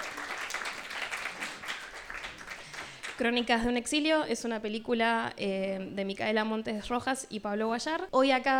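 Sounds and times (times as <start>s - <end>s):
audience applause: 0.0s - 3.2s
speech: 3.2s - 8.5s.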